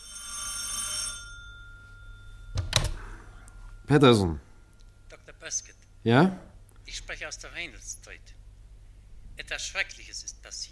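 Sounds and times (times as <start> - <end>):
telephone bell ringing in a bright metallic trill: 0.0 - 4.6
speech: 3.9 - 4.4, 5.5 - 8.4, 9.4 - 10.7.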